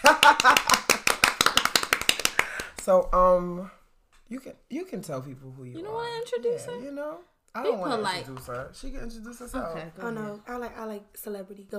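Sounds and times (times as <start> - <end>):
small group clapping: 0.0 - 3.0
speech: 2.9 - 11.7.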